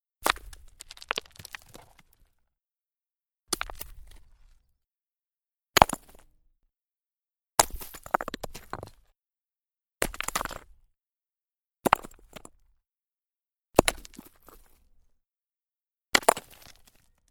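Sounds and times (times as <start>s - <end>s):
small rock impact tumbling and settling: 0.2s - 2.3s, 3.5s - 4.6s, 7.6s - 9.0s, 10.0s - 10.7s, 11.8s - 12.6s, 13.8s - 14.8s, 16.2s - 17.0s.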